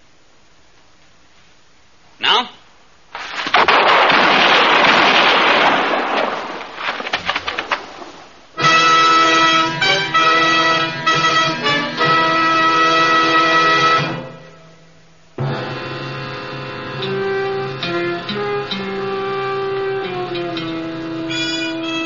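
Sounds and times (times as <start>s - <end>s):
gunshots in a Western showdown: 3.2s - 7.9s
sustained tonal horn-like sound: 8.6s - 14.8s, 15.4s - 22.0s.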